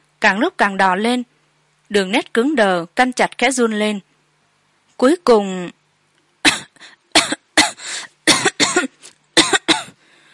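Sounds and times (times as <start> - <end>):
speech: 0.2 - 1.3, 1.9 - 4.1, 5.0 - 5.8
harsh violent coughing: 6.4 - 10.0
wheezy breath: 7.8 - 8.2, 9.9 - 10.3.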